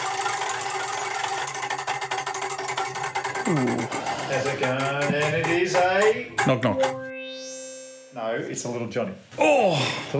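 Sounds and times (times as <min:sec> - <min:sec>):
prize wheel spinning: 0:00.0 - 0:07.0
speech: 0:03.5 - 0:07.1, 0:08.2 - 0:10.1.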